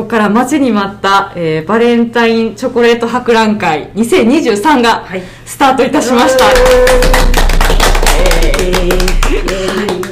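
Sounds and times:
speech: 0:00.0 - 0:07.4, 0:08.6 - 0:10.0
small group applause: 0:06.1 - 0:10.0.

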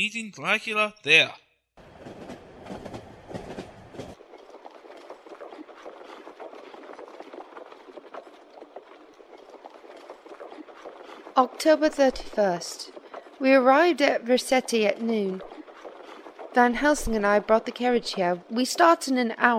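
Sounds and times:
speech: 0:00.0 - 0:01.4, 0:11.4 - 0:15.6, 0:16.5 - 0:19.5
train rolling on rails: 0:01.8 - 0:04.2.

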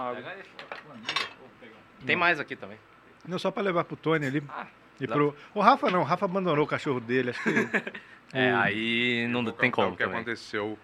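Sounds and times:
speech: 0:00.0 - 0:01.2, 0:02.0 - 0:10.8
cutlery clinking against a plate: 0:00.6 - 0:01.4
laughter: 0:07.3 - 0:08.1.

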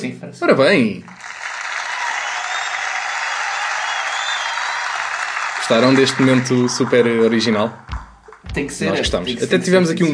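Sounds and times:
speech: 0:00.0 - 0:01.2, 0:05.7 - 0:10.1
Malucos do Riso audience applauding: 0:01.0 - 0:08.8.

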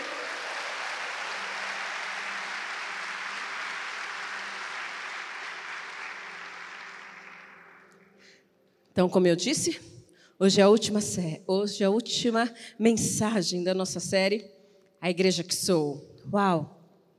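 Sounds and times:
audience applauding: 0:00.0 - 0:08.2
speech: 0:09.0 - 0:16.8.

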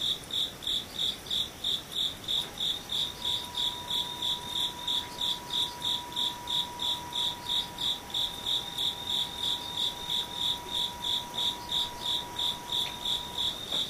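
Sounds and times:
insects: 0:00.0 - 0:13.8.

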